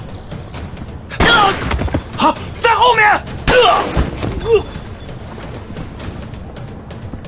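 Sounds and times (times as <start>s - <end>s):
gunshot: 1.2s - 1.8s
speech: 2.2s - 4.7s.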